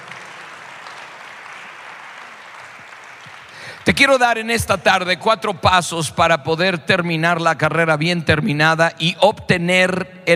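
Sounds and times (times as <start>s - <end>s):
church congregation applause during a sermon: 0.0s - 5.2s
speech: 3.9s - 10.3s.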